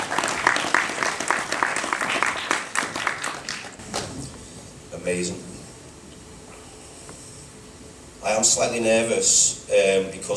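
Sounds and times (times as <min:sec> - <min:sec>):
audience applause: 0:00.0 - 0:04.0
speech: 0:05.0 - 0:05.5, 0:08.4 - 0:10.3.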